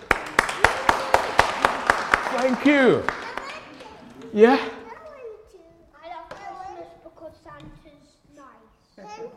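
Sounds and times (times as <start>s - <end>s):
audience clapping in rhythm: 0.0s - 4.8s
speech: 2.4s - 3.2s, 4.3s - 4.8s.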